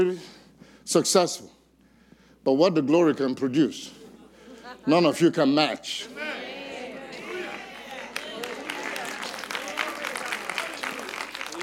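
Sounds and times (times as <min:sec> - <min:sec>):
speech: 0:00.0 - 0:01.6, 0:02.4 - 0:04.0, 0:04.8 - 0:06.4
tepid audience clapping: 0:07.2 - 0:11.6.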